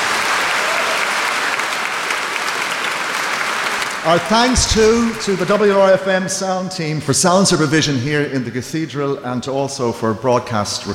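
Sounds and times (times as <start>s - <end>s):
audience applause for choirs and orchestra in a cathedral: 0.0s - 6.2s
speech: 4.0s - 10.9s.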